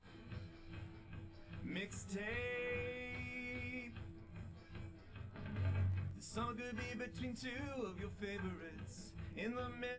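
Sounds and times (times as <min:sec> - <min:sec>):
live recorded drums: 0:00.0 - 0:09.9.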